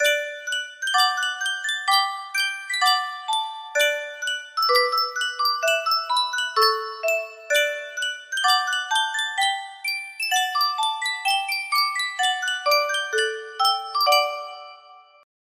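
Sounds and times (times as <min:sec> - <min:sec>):
Sankyo music box: 0:00.0 - 0:15.3.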